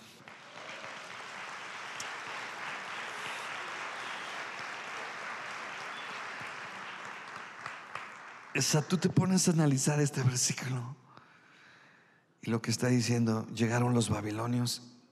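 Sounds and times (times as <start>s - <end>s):
crowd applause: 0.0s - 9.2s
speech: 8.6s - 11.0s, 12.4s - 15.0s.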